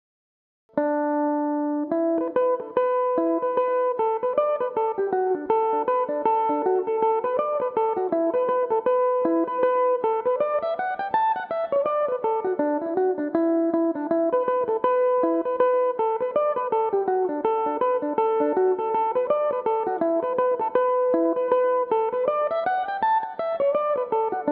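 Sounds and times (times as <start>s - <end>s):
Irish mandolin playing a reel in E dorian: 1.6s - 24.5s.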